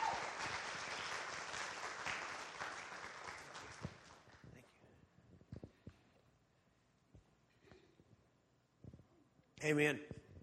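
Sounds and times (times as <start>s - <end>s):
church congregation applause welcoming a speaker: 0.0s - 4.4s
speech: 9.6s - 10.2s.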